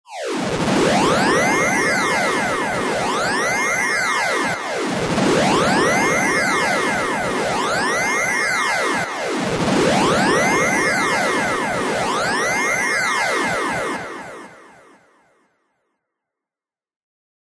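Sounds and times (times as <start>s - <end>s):
pulsating delayed FM sci-fi synth, possibly alarm: 0.6s - 14.4s.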